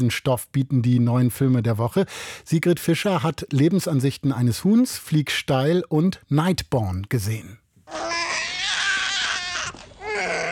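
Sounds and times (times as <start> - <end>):
speech: 0.0 - 8.3
newborn boy crying in a film scene: 7.9 - 10.5.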